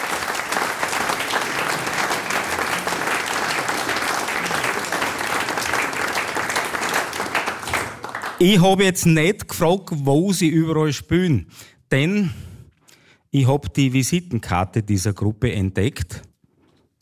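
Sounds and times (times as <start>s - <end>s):
audience applause: 0.0s - 8.6s
speech: 8.4s - 12.4s, 13.3s - 16.3s.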